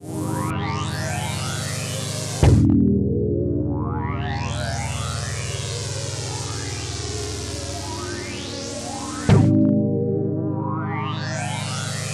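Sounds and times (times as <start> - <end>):
synth lead: 0.1 - 12.1.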